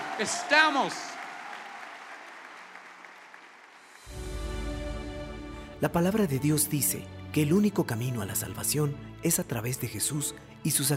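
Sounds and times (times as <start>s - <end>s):
audience clapping and cheering: 0.0s - 4.3s
speech: 0.2s - 1.2s, 5.8s - 10.9s
low musical sound: 4.1s - 10.9s.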